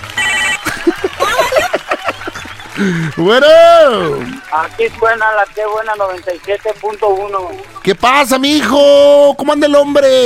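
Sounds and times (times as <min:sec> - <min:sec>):
telephone bell ringing: 0:00.0 - 0:00.8
laughter: 0:00.4 - 0:04.5
speech: 0:02.8 - 0:10.2.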